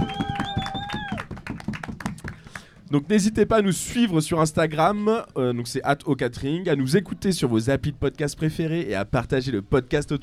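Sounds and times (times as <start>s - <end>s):
high whistle: 0.0s - 1.2s
audience applause: 0.0s - 2.7s
speech: 2.9s - 10.2s.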